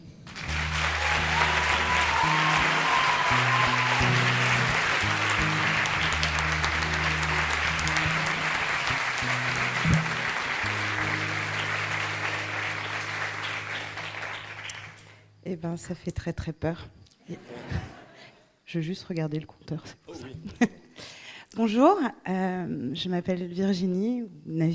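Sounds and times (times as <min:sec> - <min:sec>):
audience applause: 0:00.3 - 0:15.1
low sustained musical notes: 0:00.4 - 0:15.1
laughter: 0:00.9 - 0:06.1, 0:17.3 - 0:18.2
speech: 0:15.5 - 0:17.8, 0:18.7 - 0:20.8, 0:21.6 - 0:24.7.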